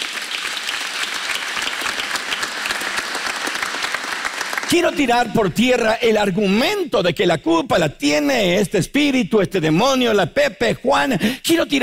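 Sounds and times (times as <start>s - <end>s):
audience applauding: 0.0s - 5.4s
speech: 4.7s - 11.8s.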